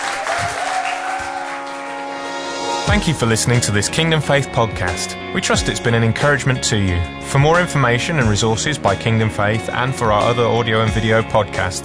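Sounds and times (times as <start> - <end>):
audience clapping: 0.0 - 2.6
speech: 2.9 - 11.8.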